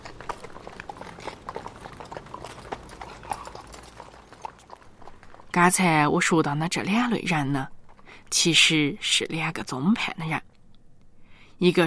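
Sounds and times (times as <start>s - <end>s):
carriage horse hooves clip-clopping along Route 30: 0.0s - 6.3s
speech: 5.6s - 10.5s, 11.6s - 11.8s.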